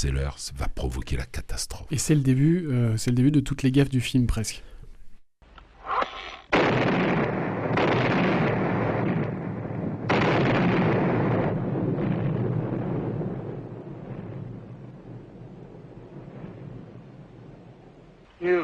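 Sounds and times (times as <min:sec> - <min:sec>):
speech: 0:00.0 - 0:04.7
crackling debris: 0:05.9 - 0:18.6
thunderous explosion of a fort in a film: 0:06.5 - 0:17.9.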